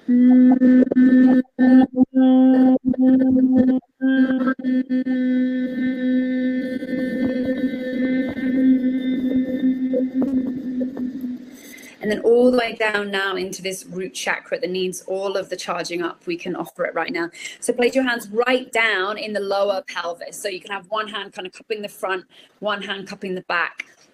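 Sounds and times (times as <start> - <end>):
sustained vocal humming during meditation: 0.0 - 12.6
speech: 0.1 - 1.4, 12.9 - 24.0.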